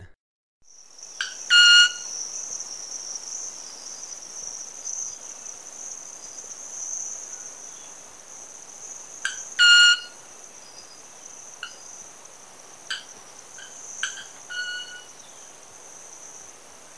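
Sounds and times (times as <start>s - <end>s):
Club-winged Manakin ringing sustained tone in Ecuador: 0.8s - 5.2s, 8.9s - 12.0s, 12.9s - 15.6s.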